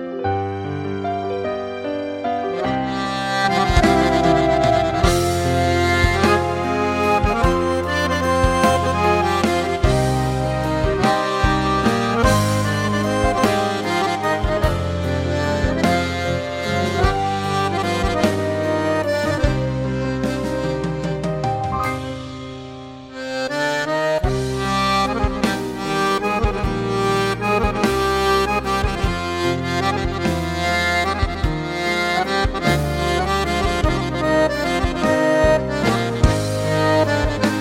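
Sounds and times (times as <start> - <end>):
accordion: 0.1 - 37.5.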